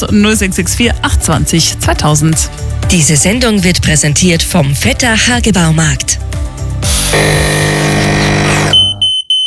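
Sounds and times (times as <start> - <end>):
speech: 0.0 - 6.4, 7.1 - 8.1
coffee machine whirring and grinding: 6.9 - 8.9
coffee machine beeping: 6.9 - 9.3.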